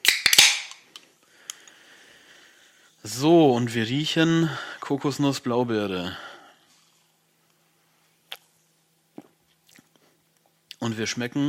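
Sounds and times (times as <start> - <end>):
drink can tab popping open: 0.0 - 0.8
speech: 3.0 - 6.3, 10.9 - 11.4.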